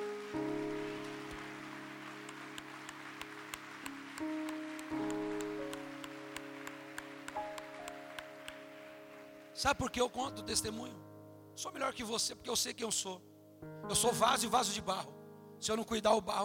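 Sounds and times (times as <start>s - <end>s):
audience applauding: 0.0s - 10.2s
speech: 9.6s - 16.4s.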